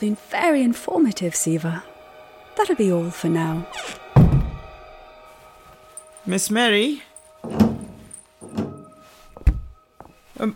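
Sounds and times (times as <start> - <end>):
speech: 0.0 - 1.9, 2.6 - 4.0, 6.3 - 7.7, 10.4 - 10.5
door shutting with a solid thud: 4.2 - 4.6, 7.4 - 8.8.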